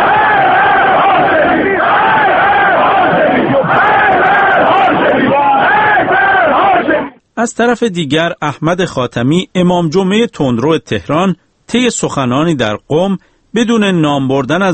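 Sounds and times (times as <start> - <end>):
crowd chanting slogans: 0.0 - 7.2
speech: 7.4 - 14.7.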